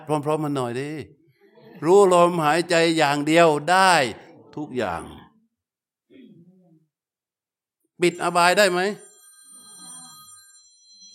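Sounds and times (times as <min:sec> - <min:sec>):
speech: 0:00.0 - 0:01.2, 0:01.8 - 0:05.2, 0:08.0 - 0:09.1
timer alarm ringing: 0:08.0 - 0:11.1.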